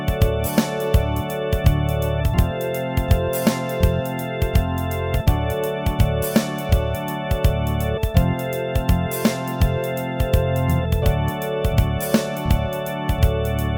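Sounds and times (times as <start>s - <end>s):
prelude music: 0.0s - 13.7s.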